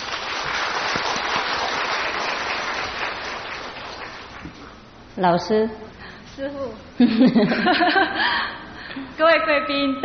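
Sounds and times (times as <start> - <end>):
audience clapping: 0.0 - 4.8
speech: 5.2 - 5.8, 6.4 - 10.0
laughter: 7.0 - 8.5.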